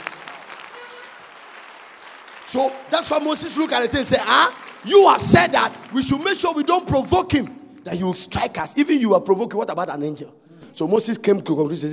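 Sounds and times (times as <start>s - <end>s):
audience clapping: 0.0s - 8.3s
speech: 2.5s - 11.9s.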